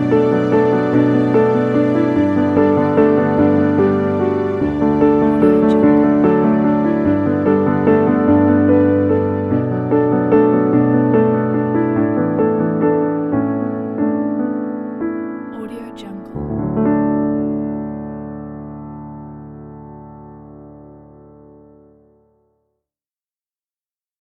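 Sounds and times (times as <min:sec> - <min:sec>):
beautiful strings: 0:00.0 - 0:14.0
emotional piano: 0:00.0 - 0:22.4.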